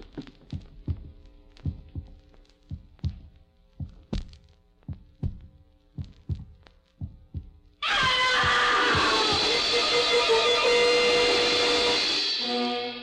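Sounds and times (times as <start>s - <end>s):
slightly fast heartbeat heard through a stethoscope: 0.0s - 9.7s
rushing noise: 7.8s - 12.8s.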